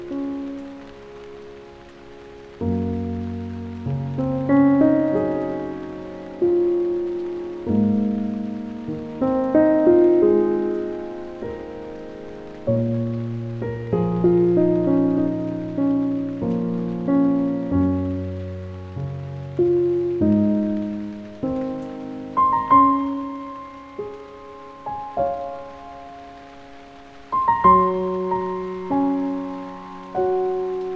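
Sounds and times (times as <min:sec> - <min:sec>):
calming piano music: 0:00.0 - 0:30.9
rain: 0:00.0 - 0:30.9.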